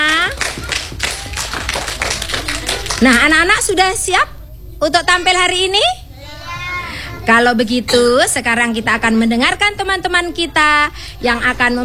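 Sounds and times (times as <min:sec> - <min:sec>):
audience clapping at a children's recitation event: 0:00.0 - 0:03.3
speech: 0:03.0 - 0:06.0, 0:07.2 - 0:11.8.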